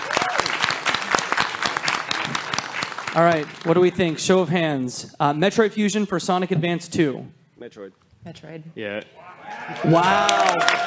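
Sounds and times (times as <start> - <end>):
audience applause: 0.0 - 4.2, 9.4 - 10.8
speech: 3.2 - 10.8
faint vocal cheers: 9.2 - 10.8.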